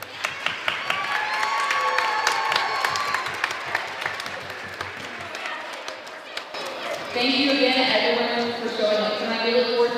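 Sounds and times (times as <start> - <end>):
audience cheering: 0.0 - 5.3
audience applause: 0.0 - 7.2
speech: 7.2 - 9.8.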